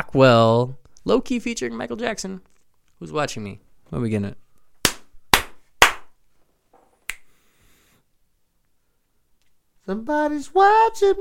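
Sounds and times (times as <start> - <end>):
speech: 0.1 - 4.4, 9.9 - 11.2
slaps: 4.8 - 6.2
finger snap: 7.0 - 7.3.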